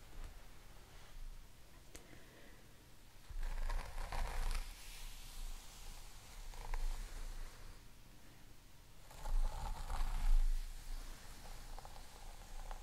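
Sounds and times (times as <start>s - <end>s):
crystal comb drawn through hair: 3.3s - 7.3s, 9.0s - 12.8s.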